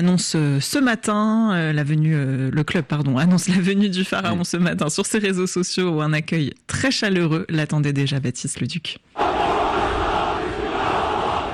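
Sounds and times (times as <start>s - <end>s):
speech: 0.0s - 9.6s
Turkish football fans chanting and shouting at Istanbul Atatürk airport: 9.2s - 11.5s.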